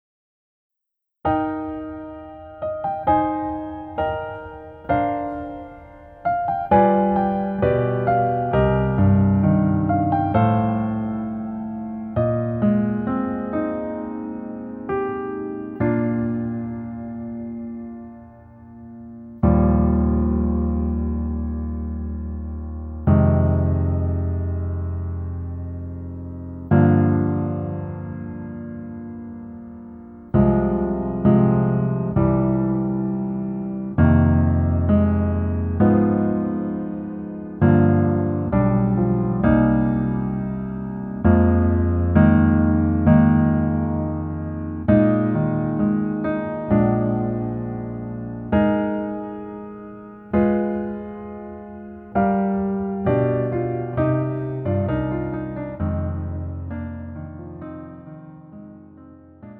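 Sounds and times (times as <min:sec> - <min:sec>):
piano version: 0:00.9 - 0:59.5.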